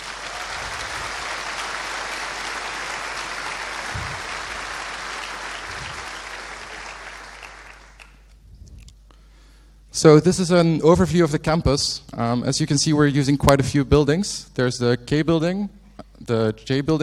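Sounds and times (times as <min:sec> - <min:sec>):
audience applause: 0:00.0 - 0:08.2
speech: 0:10.0 - 0:17.0.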